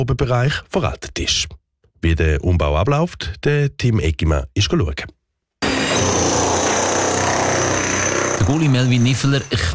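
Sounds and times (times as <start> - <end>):
speech: 0.0 - 5.2, 8.5 - 9.7
pneumatic hammer chiselling out an old locker-room wall during a renovation: 5.6 - 9.6.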